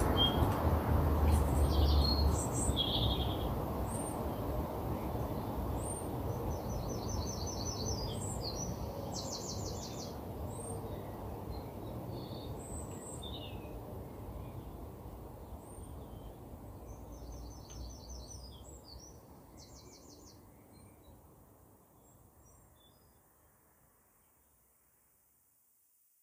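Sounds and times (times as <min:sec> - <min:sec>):
birds chirping and trilling: 0:00.0 - 0:00.6, 0:01.2 - 0:21.3.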